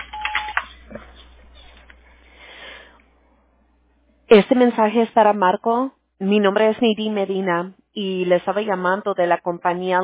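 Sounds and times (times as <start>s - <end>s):
voicemail recording tone over a phone line: 0.0s - 0.7s
speech: 4.3s - 10.0s.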